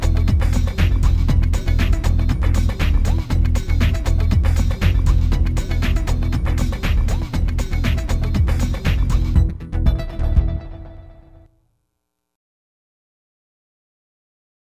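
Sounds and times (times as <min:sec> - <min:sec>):
techno music: 0:00.0 - 0:11.5.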